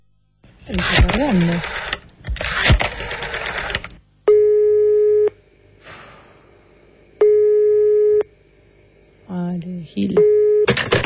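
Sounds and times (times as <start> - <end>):
people talking: 0.7 - 1.6, 9.3 - 10.3
telephone line long steady electronic tones: 3.0 - 5.4, 7.2 - 8.3, 10.1 - 10.8.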